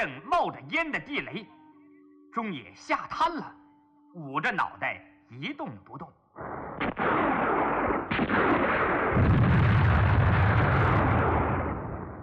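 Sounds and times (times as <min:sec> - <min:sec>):
speech: 0:00.0 - 0:01.6, 0:02.3 - 0:07.2
heavy gunfire in a battle din: 0:06.6 - 0:12.2.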